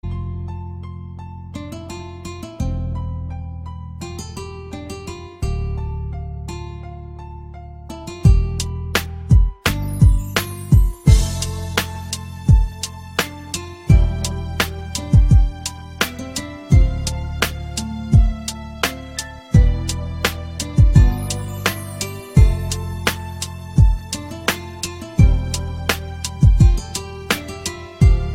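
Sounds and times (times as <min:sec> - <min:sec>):
relaxing music: 0:07.9 - 0:28.3.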